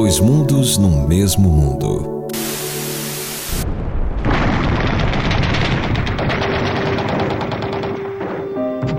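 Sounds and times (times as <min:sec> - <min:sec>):
speech: 0:00.2 - 0:02.2
missiles launching in real war footage on television news: 0:03.4 - 0:08.9
bombs exploding in real war footage on television news: 0:03.5 - 0:08.9
rapid crackling fire: 0:04.2 - 0:08.9.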